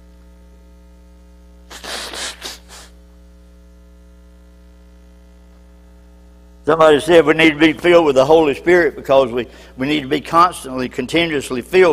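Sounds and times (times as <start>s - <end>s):
person blowing nose: 1.7s - 3.0s
speech: 6.7s - 11.9s.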